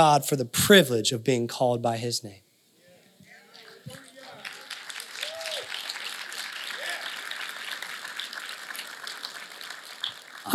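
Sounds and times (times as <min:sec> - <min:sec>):
speech: 0:00.0 - 0:02.4
audience cheering and applause: 0:03.3 - 0:10.5.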